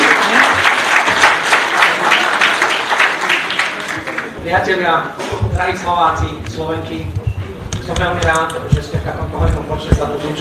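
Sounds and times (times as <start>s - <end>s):
audience applause: 0.0s - 4.4s
speech: 4.5s - 7.2s, 7.9s - 10.3s.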